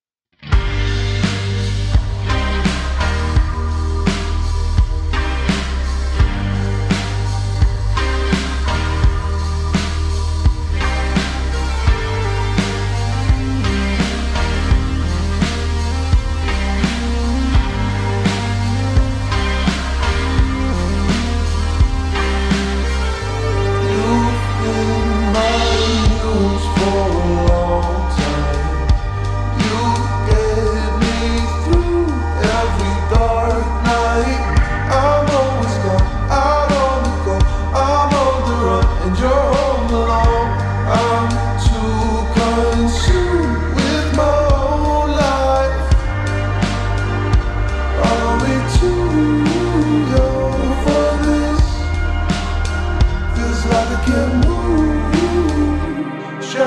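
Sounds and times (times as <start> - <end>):
slowed reverb music: 0.4 - 56.6.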